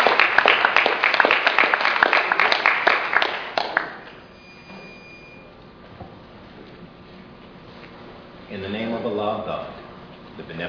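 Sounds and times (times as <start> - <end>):
audience clapping at a religious gathering: 0.0 - 4.2.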